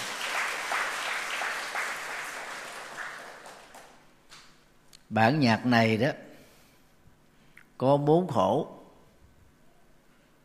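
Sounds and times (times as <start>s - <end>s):
audience applause: 0.0s - 4.1s
speech: 5.1s - 6.2s, 7.8s - 8.8s.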